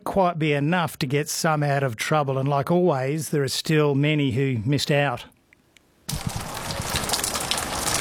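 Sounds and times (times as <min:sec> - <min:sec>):
speech: 0:00.1 - 0:05.4
steady rain: 0:06.1 - 0:08.0.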